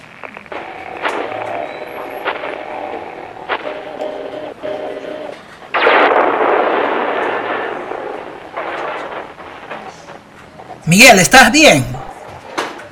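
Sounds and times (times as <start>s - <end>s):
droning mechanical hum of giant walking machine: 0.0s - 10.9s
sharp metallic cracks: 5.8s - 10.6s
speech: 10.9s - 12.0s.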